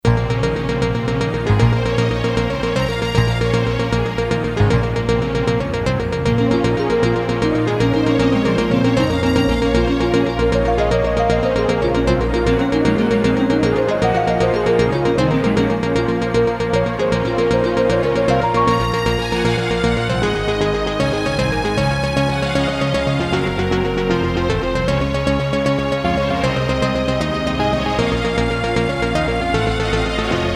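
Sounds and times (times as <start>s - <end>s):
Casio GZ-50M keyboard: 0.0s - 30.5s.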